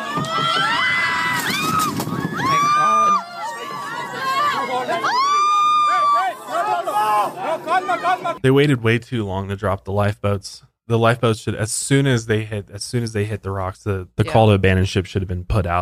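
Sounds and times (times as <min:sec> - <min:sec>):
passengers screaming in terror as lifeboats are lowered: 0:00.0 - 0:08.4
speech: 0:07.8 - 0:15.8.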